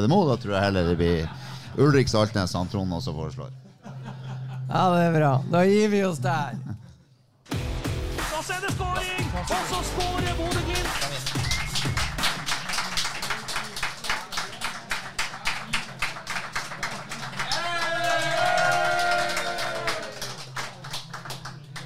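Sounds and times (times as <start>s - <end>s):
speech: 0.0s - 3.6s, 4.7s - 6.6s, 8.4s - 11.5s
audience applause in a sports bar: 9.0s - 21.8s.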